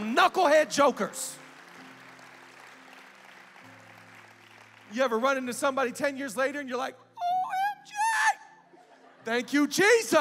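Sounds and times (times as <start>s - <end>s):
audience clapping: 0.0s - 5.8s
speech: 0.2s - 1.4s, 4.9s - 7.0s, 9.2s - 10.1s.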